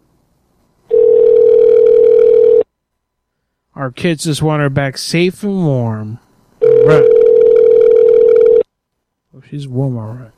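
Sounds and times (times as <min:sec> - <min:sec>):
telephone dial tone: 0:00.9 - 0:02.6, 0:06.6 - 0:08.6
speech: 0:03.9 - 0:06.2, 0:06.8 - 0:07.3, 0:09.5 - 0:10.3.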